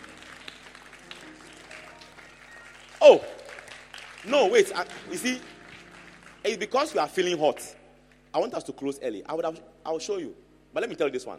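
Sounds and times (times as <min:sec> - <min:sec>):
audience clapping: 0:00.0 - 0:07.8
speech: 0:03.0 - 0:03.3, 0:04.2 - 0:05.5, 0:06.4 - 0:07.8, 0:08.4 - 0:11.3.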